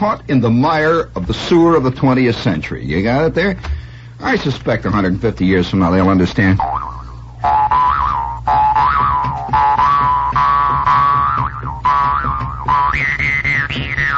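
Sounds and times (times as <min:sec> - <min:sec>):
speech: 0:00.0 - 0:07.6
recorded song with sliding lead melody over low accompaniment: 0:06.6 - 0:14.1.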